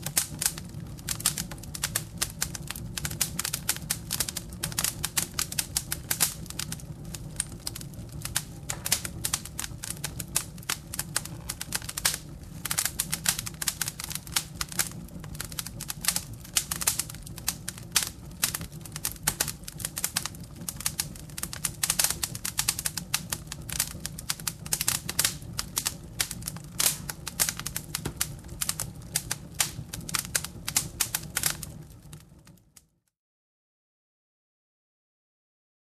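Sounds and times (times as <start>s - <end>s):
bonfire crackling: 0.0s - 33.0s.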